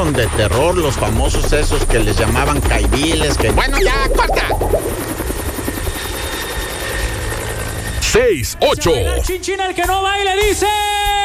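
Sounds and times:
helicopter flying with rotor chop and engine roar: 0.0 - 8.2
speech: 0.1 - 5.1, 8.1 - 11.1.

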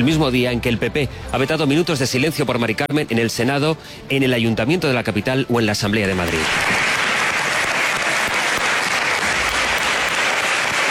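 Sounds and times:
speech: 0.0 - 6.9
legislators applauding in an assembly chamber: 6.2 - 10.8.

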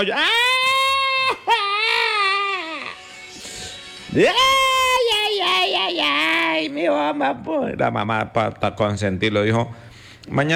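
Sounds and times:
speech: 0.0 - 0.4, 4.1 - 4.6, 5.7 - 10.5
voice imitating a child crying in a comic story: 0.0 - 3.0, 4.2 - 7.1.

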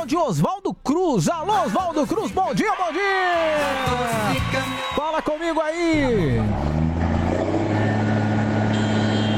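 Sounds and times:
speech: 0.2 - 6.8
car horns honking: 4.3 - 9.3.

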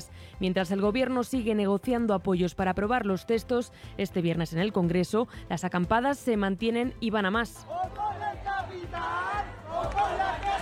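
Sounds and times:
speech: 0.0 - 10.2
protest crowd shouting and chanting: 7.6 - 10.6.

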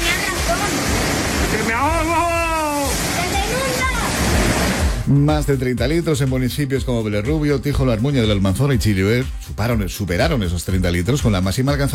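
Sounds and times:
heavy rain falling: 0.0 - 5.1
speech: 1.5 - 2.4, 5.1 - 11.9.

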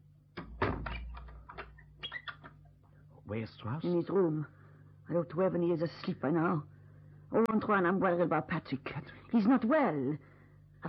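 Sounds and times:
door closing thump: 0.4 - 1.4
faint knocks and rattles: 0.4 - 2.6
speech: 3.3 - 6.7, 7.3 - 10.8.

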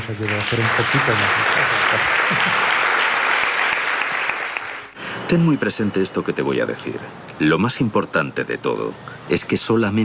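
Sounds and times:
crowd applause: 0.0 - 5.0
speech: 0.1 - 2.1, 5.3 - 10.0.

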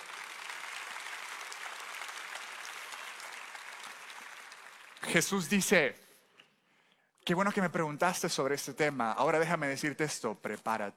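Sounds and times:
audience applause: 0.0 - 5.4
speech: 5.0 - 6.0, 7.2 - 10.9.

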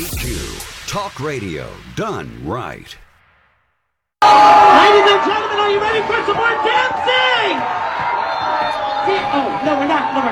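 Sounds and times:
speech: 0.1 - 3.0, 4.3 - 7.9, 9.0 - 10.2
large crowd booing a speaker off stage: 4.2 - 10.2.

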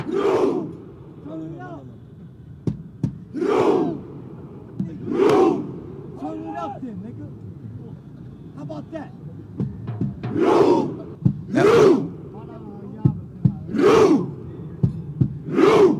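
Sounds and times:
Norwegian football fans chanting a rowing cheer in Times Square: 0.0 - 1.5, 3.2 - 6.8, 10.1 - 12.4, 13.5 - 14.5, 15.2 - 15.9.

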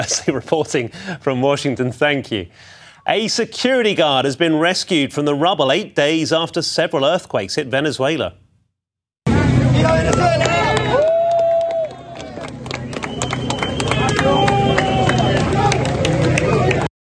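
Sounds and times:
speech: 0.0 - 8.4, 9.8 - 10.7
crowd clapping and cheering at rescue site: 9.3 - 16.9.

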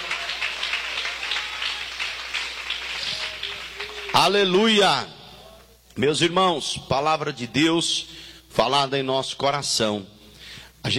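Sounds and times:
audience clapping hands loudly: 0.0 - 4.6
speech: 4.2 - 5.2, 6.0 - 10.2.

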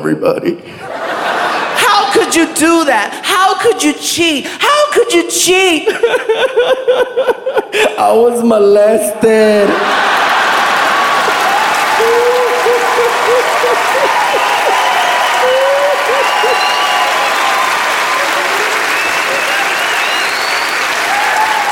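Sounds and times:
speech: 0.0 - 1.0, 2.3 - 10.0
audience laughing: 0.8 - 1.8, 5.8 - 7.9, 9.6 - 17.2
audience clapping: 9.7 - 21.7.

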